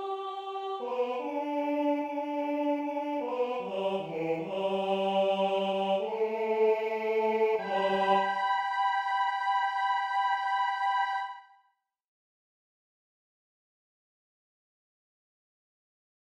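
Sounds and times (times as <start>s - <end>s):
soprano singing slowly: 0.0s - 11.5s.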